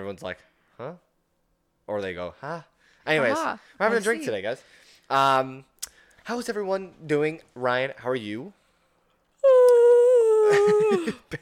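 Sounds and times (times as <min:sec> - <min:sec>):
speech: 0:00.0 - 0:01.1, 0:01.9 - 0:05.7, 0:06.3 - 0:08.6, 0:10.5 - 0:11.3
person yawning: 0:09.4 - 0:11.3.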